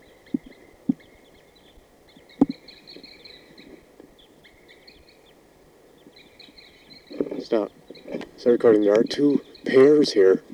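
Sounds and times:
soft low thumps: 0.0 - 1.1, 2.3 - 2.7
wild birds calling in a tree: 0.0 - 10.5
speech: 7.5 - 7.8, 8.4 - 10.5.

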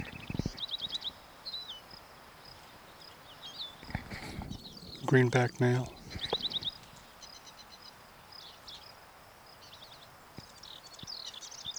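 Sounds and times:
wild bird calling: 0.0 - 7.3
steady hiss: 2.1 - 7.1
speech: 5.1 - 6.0.

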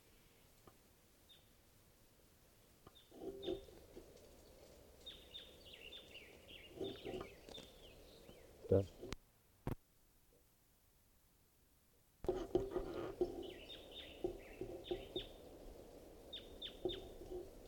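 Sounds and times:
wild bird calls: 2.9 - 3.8, 4.4 - 9.1, 12.6 - 17.5
speech: 8.7 - 9.0.

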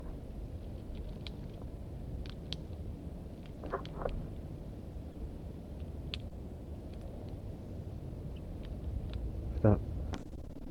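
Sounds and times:
low rumble: 0.0 - 10.6
wild birds chirping and twittering: 4.8 - 5.4, 8.2 - 8.9.

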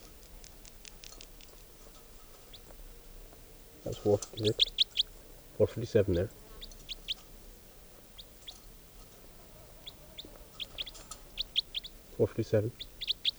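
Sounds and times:
birds chirping: 0.0 - 13.3
hiss: 0.0 - 13.3
speech: 3.8 - 4.8, 5.6 - 6.4, 12.2 - 12.9
throaty bird squawk: 3.8 - 13.3.

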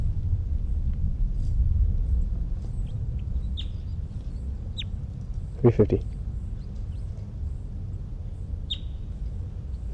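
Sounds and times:
steady low rumble: 0.0 - 9.9
bird singing in high-pitched chirps: 2.0 - 9.9.

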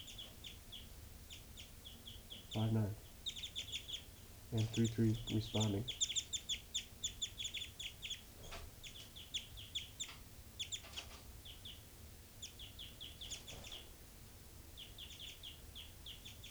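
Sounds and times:
bird night flight calls: 1.4 - 11.0
speech: 2.5 - 3.0, 4.5 - 6.0.

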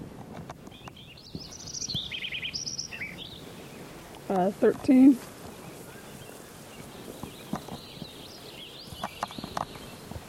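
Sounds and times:
sparrow song: 0.7 - 3.8, 5.6 - 10.2
speech: 4.3 - 5.3.

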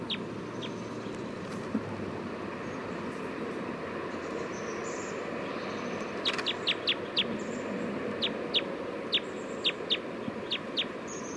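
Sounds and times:
bird calling with high chirps: 0.0 - 1.4, 4.1 - 11.3
low rumbling noise: 0.0 - 11.3.

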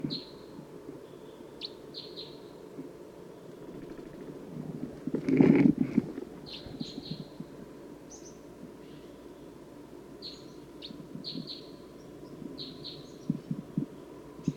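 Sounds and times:
low steady hum: 0.0 - 14.5
wild bird giving short high thin chirps: 0.1 - 2.6, 6.4 - 7.4, 8.1 - 9.5, 10.2 - 14.5
rustling: 4.0 - 6.5.

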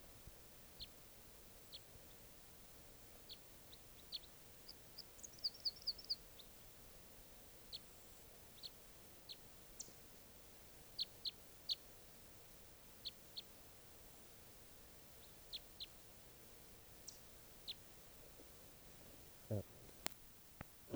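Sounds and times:
soft background hiss: 0.0 - 20.9
red crossbill kip calls: 19.0 - 20.0.

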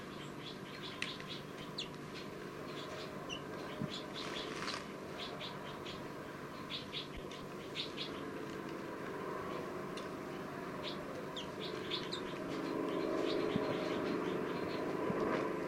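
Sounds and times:
baby crossbill calls: 0.0 - 8.3, 10.8 - 14.9
low electrical hum: 0.0 - 15.6.

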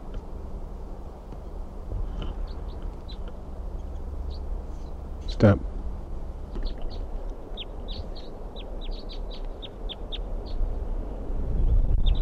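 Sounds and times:
low rumble: 0.0 - 12.2
crossbill chip calls: 2.2 - 5.6, 6.5 - 10.8
speech: 5.4 - 5.7.

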